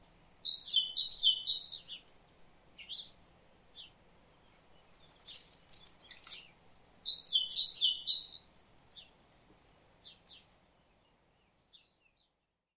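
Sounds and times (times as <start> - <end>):
great tit Parus major calls: 0.4 - 2.0, 4.9 - 10.5.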